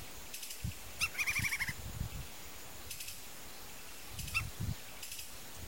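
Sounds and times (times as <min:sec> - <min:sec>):
red-crested woodpecker calling: 0:00.4 - 0:01.8, 0:04.1 - 0:05.3.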